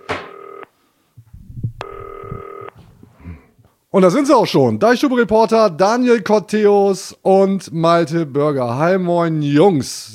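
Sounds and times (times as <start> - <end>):
electronic telephone ringback tone during outgoing call: 0.0 - 0.6, 1.8 - 2.8
speech: 4.0 - 10.1.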